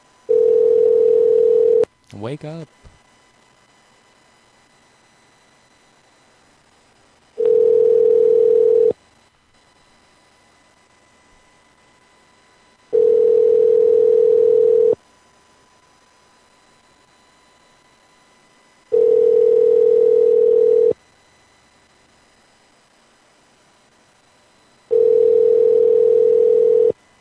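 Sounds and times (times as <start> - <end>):
unanswered telephone call ringback tones: 0.3 - 1.8, 7.4 - 9.0, 12.9 - 15.0, 18.9 - 21.0, 24.9 - 27.0
speech: 2.1 - 2.9.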